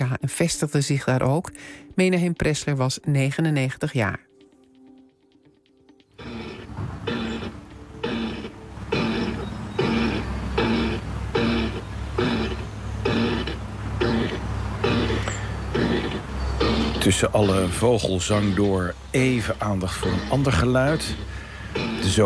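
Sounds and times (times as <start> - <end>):
speech: 0.2 - 4.3, 17.0 - 22.2
hedgehog snuffling in a garden: 6.2 - 22.2.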